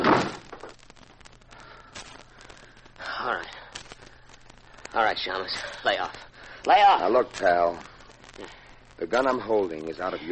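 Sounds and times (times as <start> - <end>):
door kicked shut: 0.0 - 0.5
speech: 5.0 - 10.3.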